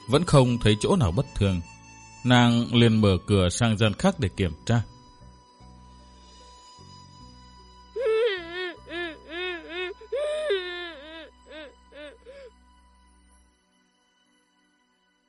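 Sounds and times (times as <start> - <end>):
speech: 0.1 - 4.9
eerie crying sound effect: 8.0 - 12.6.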